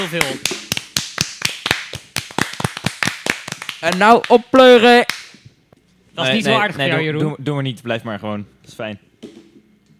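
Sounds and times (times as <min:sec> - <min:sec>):
speech: 0:00.0 - 0:00.6, 0:03.8 - 0:05.2, 0:06.2 - 0:09.4
few people clapping to applaud listeners: 0:00.0 - 0:05.4.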